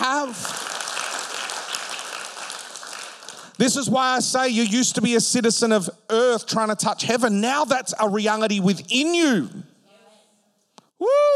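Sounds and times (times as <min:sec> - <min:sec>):
congregation clapping during a church service: 0:00.0 - 0:05.0
speech: 0:03.6 - 0:09.7.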